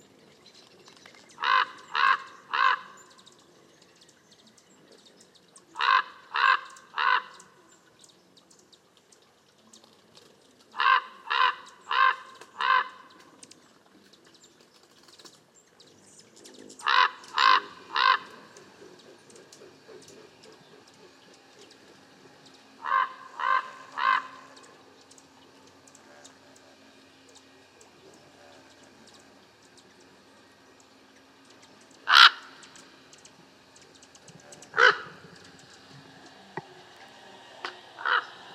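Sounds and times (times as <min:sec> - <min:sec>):
Northern raven Corvus corax sinuatus: 0:01.3 - 0:03.4, 0:05.6 - 0:07.9, 0:10.6 - 0:13.4, 0:16.5 - 0:38.5.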